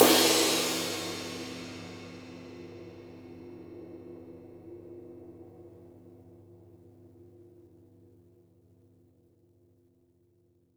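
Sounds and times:
flat ride cymbal: 0:00.0 - 0:02.8.

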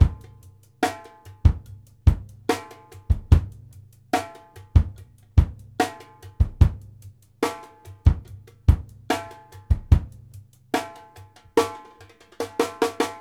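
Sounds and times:
funk kick drum: 0:00.0 - 0:00.6, 0:01.3 - 0:10.9.

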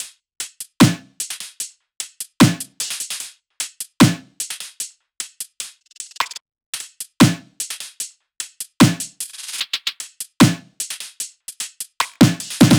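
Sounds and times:
music loop: 0:12.2 - 0:12.7.

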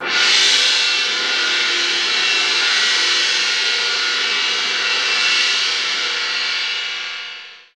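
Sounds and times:
orchestral percussion cymbal: 0:00.0 - 0:07.7.

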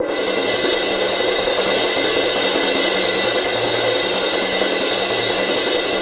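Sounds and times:
percussion cymbal: 0:00.0 - 0:05.9.

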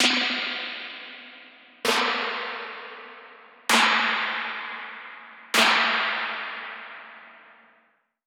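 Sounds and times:
spring slap snare drum hit: 0:01.9 - 0:07.4.

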